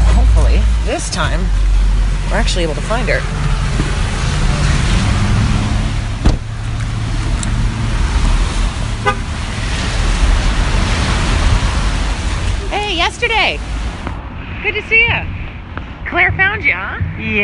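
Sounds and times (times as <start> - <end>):
heavy rain: 0.0 - 15.3
speech: 1.0 - 3.9, 13.2 - 13.8, 14.6 - 15.4, 16.1 - 17.4.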